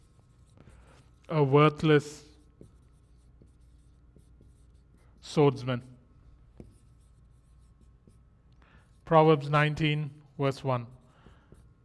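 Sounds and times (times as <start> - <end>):
pen scratching rapidly on paper: 0.0 - 5.6, 6.2 - 9.5, 10.3 - 11.8
speech: 1.3 - 2.3, 5.3 - 5.9, 9.1 - 11.0.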